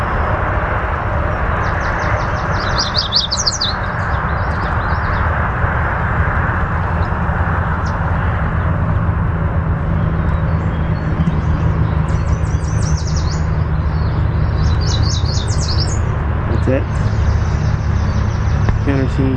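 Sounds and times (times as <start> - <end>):
deep rumble: 0.0 - 19.3
yellow warbler singing: 1.6 - 5.2, 10.0 - 19.3.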